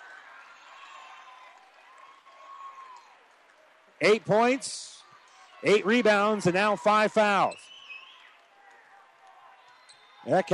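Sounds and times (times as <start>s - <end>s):
crowd applause: 0.0s - 10.5s
speech: 4.0s - 5.0s, 5.6s - 7.6s, 10.2s - 10.5s.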